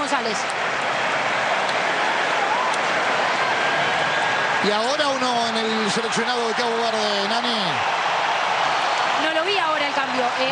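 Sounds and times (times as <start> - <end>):
stadium crowd applause: 0.0 - 10.4
speech: 0.2 - 0.7, 4.6 - 8.0, 9.2 - 10.4.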